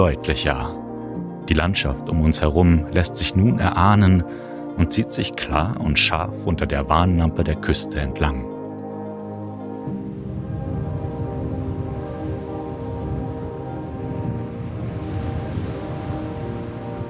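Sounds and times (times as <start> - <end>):
speech: 0.0 - 0.8, 1.5 - 8.5
roaring wild ocean waves on coast: 9.8 - 17.0.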